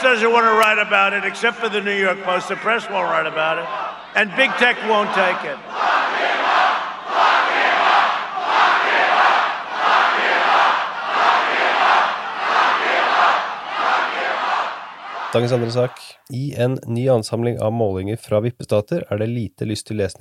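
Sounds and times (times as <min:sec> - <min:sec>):
speech: 0:00.0 - 0:06.3, 0:15.3 - 0:20.2
crowd chanting rhythmically: 0:01.0 - 0:16.2.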